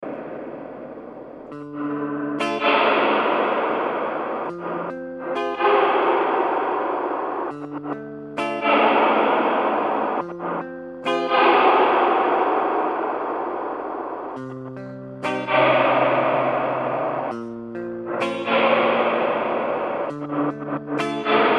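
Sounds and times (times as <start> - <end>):
swell: 0.0 - 21.5.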